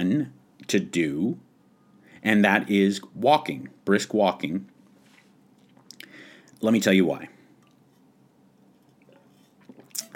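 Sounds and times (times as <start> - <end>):
speech: 0.0 - 1.5, 2.2 - 4.7, 6.6 - 7.3
person drinking water: 5.2 - 6.6, 8.7 - 10.1.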